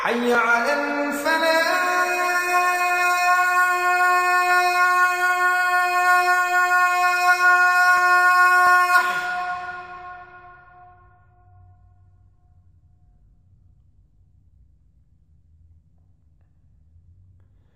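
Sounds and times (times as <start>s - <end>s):
azan call to prayer: 0.0s - 11.6s.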